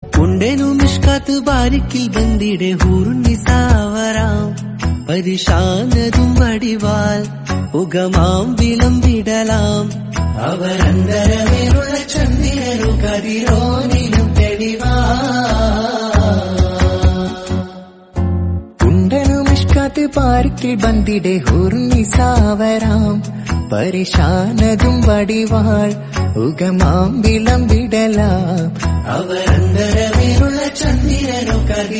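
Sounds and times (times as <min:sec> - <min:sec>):
Tamil South Indian music: 0:00.0 - 0:31.9.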